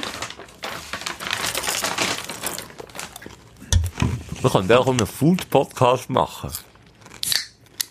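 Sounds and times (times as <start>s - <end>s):
water bottle being opened: 0.0s - 5.4s
speech: 4.4s - 6.7s.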